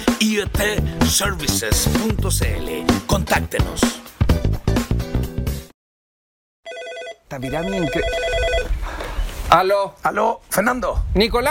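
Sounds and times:
music: 0.0 - 5.7
speech: 0.2 - 4.1, 7.3 - 8.3, 9.5 - 11.4
office telephone ringing on an incoming call: 6.7 - 8.7.

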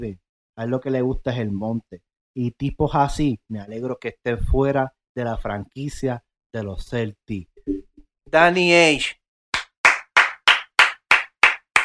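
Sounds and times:
speech: 0.0 - 7.5, 8.3 - 9.2
applause: 9.6 - 11.8.

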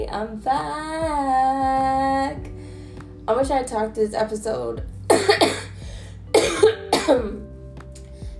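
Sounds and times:
speech: 0.2 - 1.4, 3.3 - 5.5
person coughing: 5.1 - 5.7, 6.3 - 7.4.

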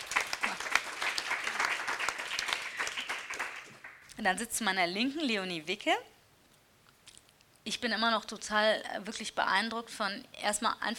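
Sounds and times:
audience applause: 0.0 - 4.0
speech: 4.2 - 6.2, 7.6 - 10.9.

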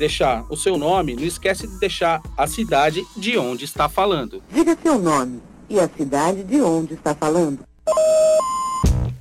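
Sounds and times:
speech: 0.0 - 8.6
telephone signal tones like those announcing a collect call: 7.9 - 8.9.

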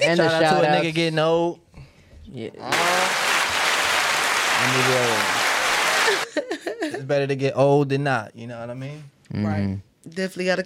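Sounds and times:
speech: 0.0 - 1.6, 2.3 - 3.3, 4.6 - 5.4, 6.4 - 10.6
applause: 2.7 - 6.3.

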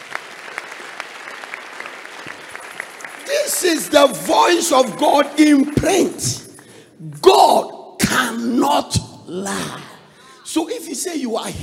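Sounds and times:
audience clapping: 0.0 - 7.3
speech: 3.3 - 6.4, 7.0 - 9.9, 10.5 - 11.6.

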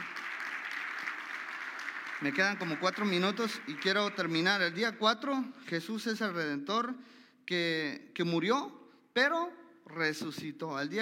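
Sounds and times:
crowd applauding: 0.0 - 4.9
speech: 2.2 - 10.9.

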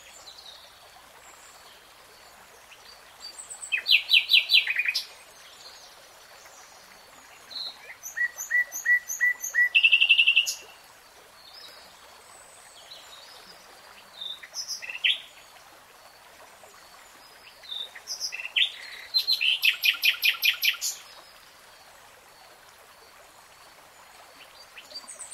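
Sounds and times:
nightingale singing: 3.7 - 5.1, 7.6 - 10.6, 18.2 - 21.0.

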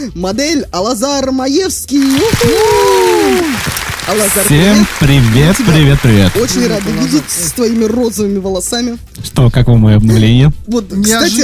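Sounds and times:
speech: 0.0 - 11.4
enthusiastic audience applause: 2.0 - 8.3.

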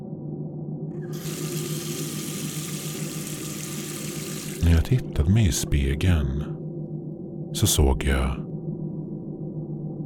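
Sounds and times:
low hum: 0.0 - 10.0
tap water running into a sink: 1.0 - 4.6
speech: 4.6 - 6.6, 7.6 - 8.5.

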